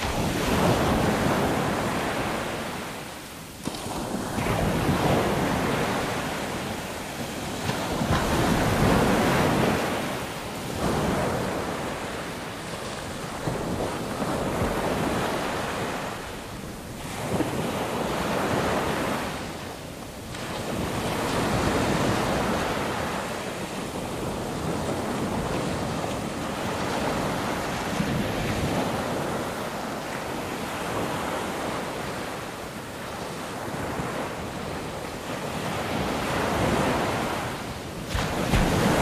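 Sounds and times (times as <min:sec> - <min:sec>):
waves on beach: 0:00.0 - 0:39.0.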